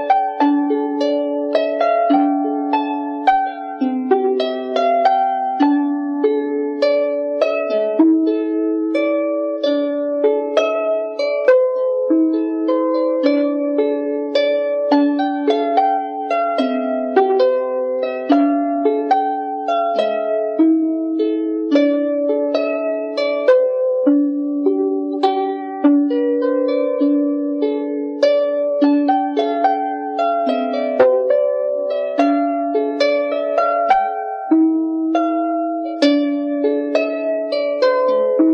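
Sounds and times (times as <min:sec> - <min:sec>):
harp improvisation: 0:00.0 - 0:38.5.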